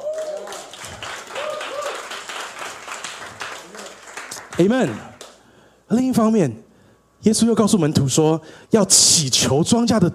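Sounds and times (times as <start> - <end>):
audience applause: 0.0 - 5.3
speech: 4.6 - 5.1, 5.9 - 6.6, 7.2 - 10.1.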